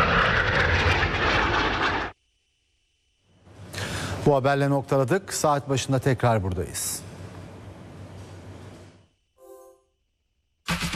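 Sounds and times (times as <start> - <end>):
Turkish Air Force aerobatic team jets roaring at an air show: 0.0 - 2.2
speech: 4.2 - 7.1.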